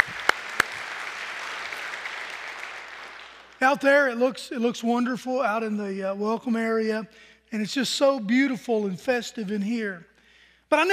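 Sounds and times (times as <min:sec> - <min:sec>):
audience applause: 0:00.0 - 0:03.9
speech: 0:03.6 - 0:10.1, 0:10.7 - 0:10.9.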